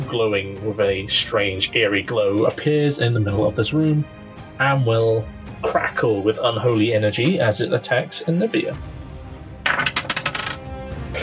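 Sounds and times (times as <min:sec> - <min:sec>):
speech: 0:00.1 - 0:09.0
twenty-sided die being rolled: 0:09.7 - 0:10.6.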